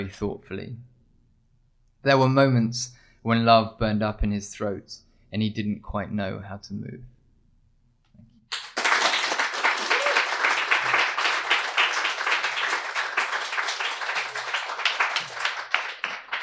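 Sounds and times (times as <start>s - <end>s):
speech: 0.0s - 0.9s, 2.0s - 7.1s
audience applause after a reading: 8.5s - 16.4s.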